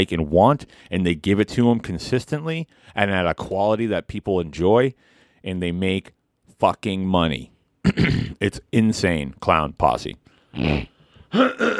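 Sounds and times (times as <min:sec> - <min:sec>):
speech: 0:00.0 - 0:11.7
man clearing throat: 0:07.8 - 0:08.4, 0:10.6 - 0:11.7.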